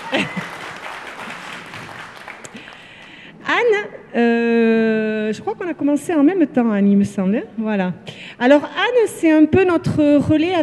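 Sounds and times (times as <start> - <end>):
audience applause: 0.0 - 3.1
speech: 0.1 - 0.5, 3.8 - 4.6, 5.3 - 10.6.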